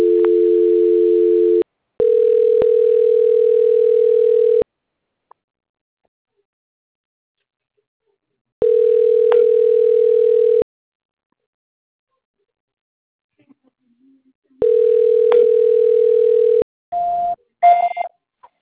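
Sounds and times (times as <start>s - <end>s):
telephone ringback tone during call transfer: 0.0s - 4.6s, 8.6s - 10.6s, 14.6s - 18.0s.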